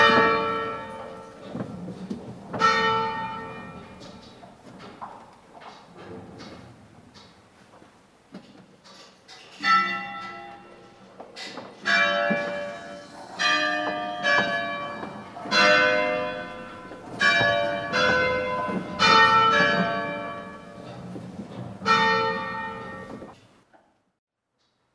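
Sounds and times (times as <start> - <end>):
bells of San Rocco: 0.0 - 4.6, 9.5 - 23.4.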